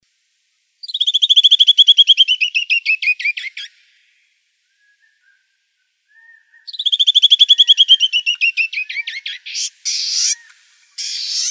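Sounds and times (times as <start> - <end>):
canyon wren song: 0.0 - 11.4.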